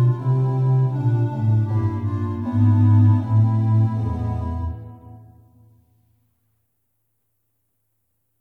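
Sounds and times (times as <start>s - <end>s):
instrumental music: 0.0s - 6.1s.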